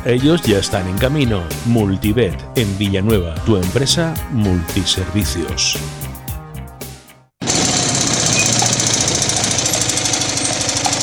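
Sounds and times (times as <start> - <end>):
speech: 0.0 - 6.0
music: 0.0 - 6.2
car engine knocking: 7.4 - 11.0.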